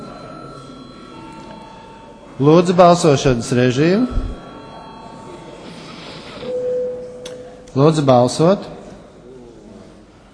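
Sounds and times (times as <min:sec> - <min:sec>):
electric parliament chamber bell ringing: 0:00.0 - 0:08.1
speech: 0:02.4 - 0:04.4, 0:07.8 - 0:08.8.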